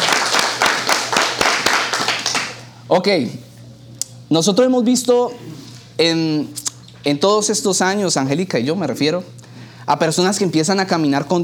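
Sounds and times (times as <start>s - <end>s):
audience applause: 0.0s - 2.7s
speech: 2.9s - 3.5s, 4.3s - 11.4s.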